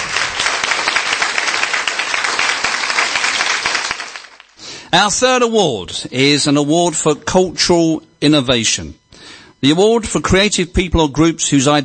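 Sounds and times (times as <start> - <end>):
audience applause: 0.0 - 4.6
speech: 4.9 - 9.0, 9.6 - 11.8.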